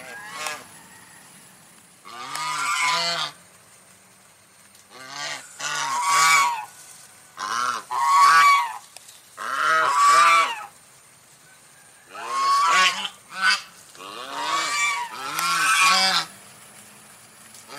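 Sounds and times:
domestic goose honking: 0.0s - 0.8s, 2.0s - 3.4s, 4.9s - 6.8s, 7.4s - 10.8s, 12.1s - 16.4s.

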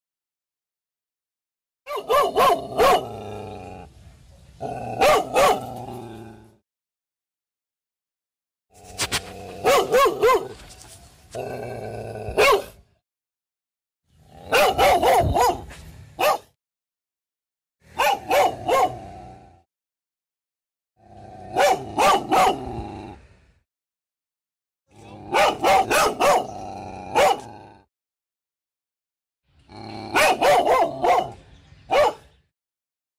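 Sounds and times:
dog barking: 1.9s - 3.2s, 5.0s - 5.7s, 9.6s - 10.6s, 12.4s - 12.8s, 14.5s - 16.6s, 18.0s - 19.0s, 21.5s - 22.7s, 25.3s - 26.5s, 27.1s - 27.5s, 30.1s - 32.3s.

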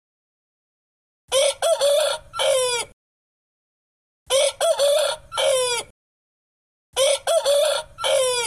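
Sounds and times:
rooster crowing: 1.3s - 2.9s, 4.3s - 5.9s, 7.0s - 8.4s.

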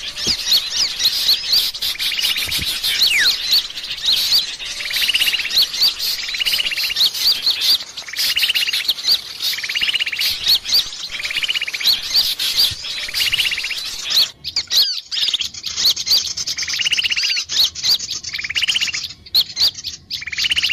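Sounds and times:
background hiss: 0.0s - 14.2s
bird chirps and trills: 0.0s - 20.7s.

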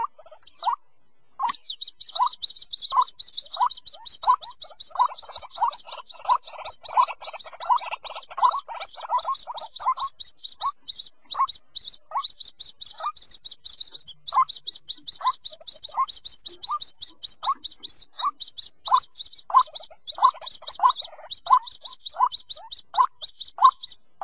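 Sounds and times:
White-breasted waterhen calls: 0.0s - 0.8s, 1.4s - 24.2s.

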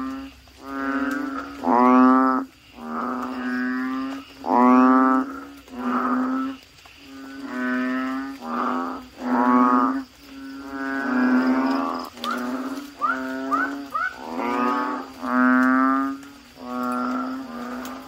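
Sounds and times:
Asian common toads croaking: 0.0s - 18.0s.

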